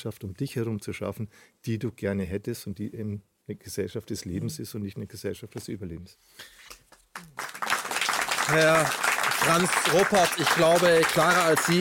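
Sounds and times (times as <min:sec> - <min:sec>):
speech: 0:00.0 - 0:07.4, 0:08.5 - 0:11.7
audience applause: 0:07.2 - 0:11.7.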